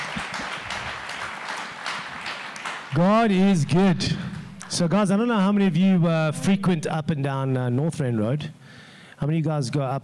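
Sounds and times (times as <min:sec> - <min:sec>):
audience applause: 0:00.0 - 0:03.1
speech: 0:02.9 - 0:10.0.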